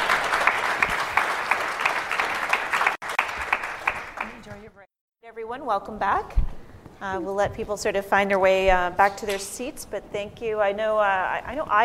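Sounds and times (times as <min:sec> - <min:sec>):
audience applause for panelists: 0:00.0 - 0:04.5
speech: 0:05.6 - 0:11.8.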